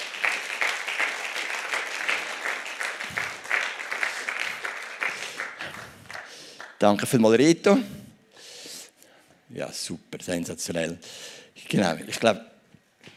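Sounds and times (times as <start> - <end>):
audience applause: 0.0 - 6.8
speech: 6.8 - 8.0, 9.6 - 12.5.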